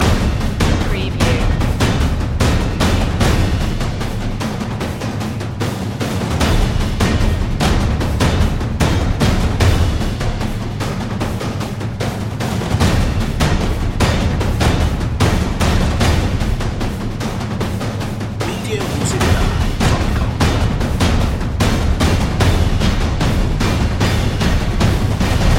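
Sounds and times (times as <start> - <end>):
tense tom drum loop: 0.0 - 25.5.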